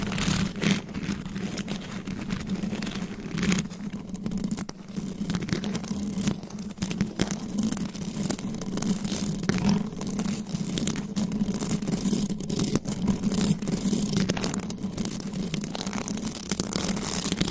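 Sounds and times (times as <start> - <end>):
claws scratching microphone: 0.0 - 17.4.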